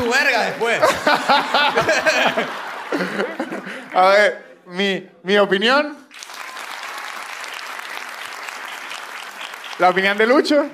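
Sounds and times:
crowd applause: 0.0s - 4.0s, 6.1s - 10.7s
laughter: 0.0s - 4.2s
speech: 0.1s - 6.0s, 9.8s - 10.7s.

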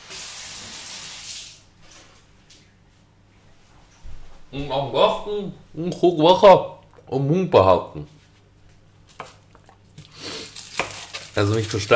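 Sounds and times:
speech: 4.5s - 8.2s, 11.4s - 11.9s
knife chopping food on a cutting board: 10.7s - 11.2s.

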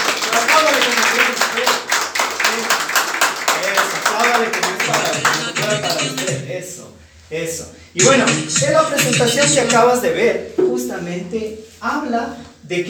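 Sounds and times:
audience applause: 0.0s - 6.3s
speech: 0.4s - 1.9s, 6.6s - 12.8s.

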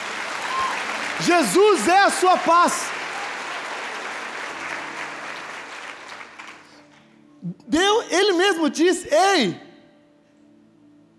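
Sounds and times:
church audience applauding: 0.0s - 7.0s
speech: 1.2s - 2.9s, 7.5s - 9.6s.

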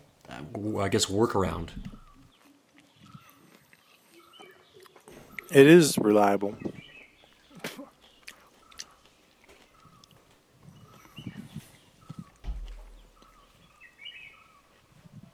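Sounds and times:
birds singing: 0.0s - 2.4s, 4.2s - 15.3s
crunching and clattering noises: 0.0s - 2.4s, 6.5s - 15.3s
speech: 0.4s - 2.0s, 5.5s - 6.7s.

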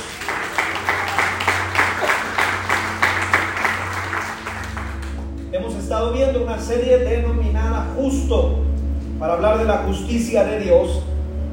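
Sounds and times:
audience applause: 0.0s - 5.5s
speech: 6.0s - 11.1s.

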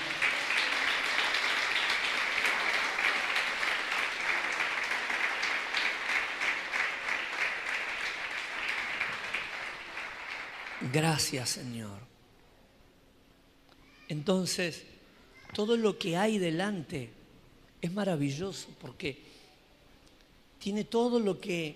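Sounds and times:
audience applauding loudly: 0.0s - 11.6s
speech: 10.9s - 12.2s, 14.1s - 14.9s, 15.5s - 17.2s, 17.8s - 19.4s, 20.6s - 21.7s.

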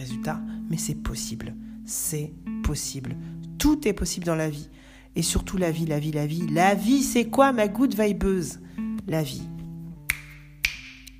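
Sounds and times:
speech: 0.0s - 9.6s
crisp finger snaps: 9.6s - 11.1s.

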